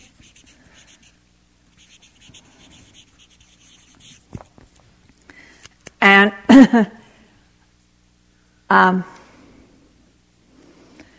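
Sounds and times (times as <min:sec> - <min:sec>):
writing scratching strokes: 0:00.0 - 0:04.7
speech: 0:06.0 - 0:07.0, 0:08.7 - 0:09.1.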